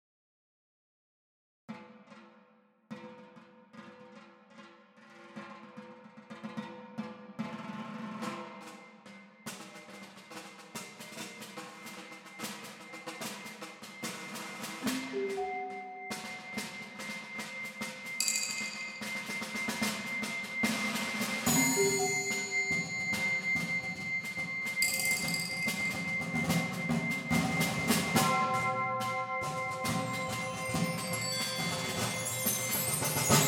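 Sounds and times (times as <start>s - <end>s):
percussion: 2.9s - 33.4s.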